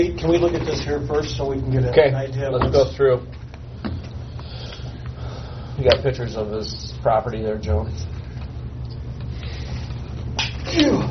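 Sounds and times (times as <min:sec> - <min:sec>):
speech: 0:00.0 - 0:03.4, 0:05.8 - 0:08.1, 0:10.7 - 0:11.0
sneeze: 0:10.6 - 0:11.0.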